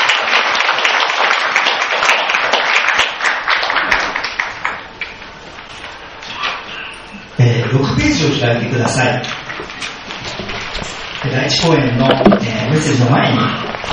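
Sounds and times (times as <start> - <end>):
audience applause: 0.0 - 4.9
speech: 7.7 - 9.9, 11.2 - 13.7.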